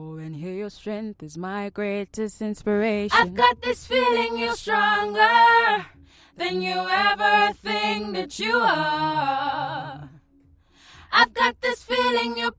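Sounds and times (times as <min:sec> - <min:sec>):
pop music in F major: 0:02.4 - 0:10.2, 0:10.8 - 0:12.5.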